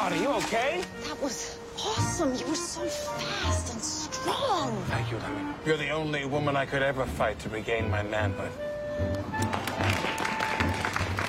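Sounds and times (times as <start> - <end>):
speech: 0.1 - 9.4
crowd cheering: 9.4 - 11.2.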